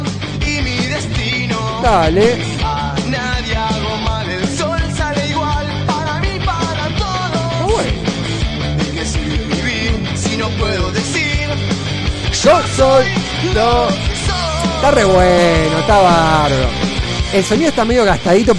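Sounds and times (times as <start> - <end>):
dense distorted guitars: 0.1 - 18.5
speech: 1.8 - 2.5, 12.4 - 14.0, 14.8 - 18.5
wailing vocal line: 13.6 - 17.1.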